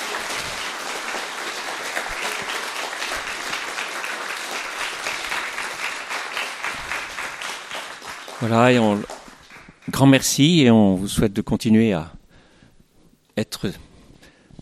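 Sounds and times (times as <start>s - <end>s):
audience applause: 0.0s - 10.6s
speech: 8.4s - 9.2s, 9.9s - 12.2s, 13.4s - 13.8s.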